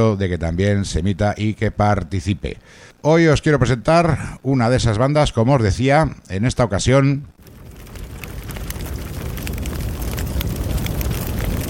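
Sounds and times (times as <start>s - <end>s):
speech: 0.0s - 7.4s
crackling fire: 7.3s - 11.6s.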